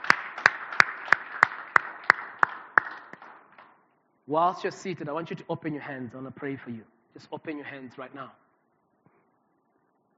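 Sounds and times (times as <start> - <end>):
audience clapping hands: 0.0 - 3.8
speech: 4.3 - 8.4.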